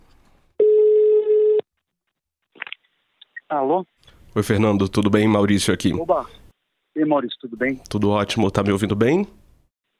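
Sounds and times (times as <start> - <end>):
telephone ringing tone: 0.6 - 1.6
speech: 3.5 - 6.4, 7.0 - 9.4.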